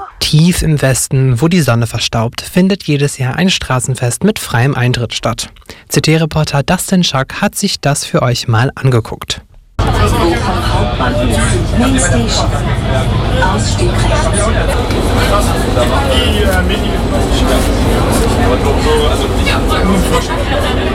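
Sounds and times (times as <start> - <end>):
speech: 0.3 - 20.9
crowd in a subway station: 9.8 - 20.9
subway train arriving: 9.8 - 20.9.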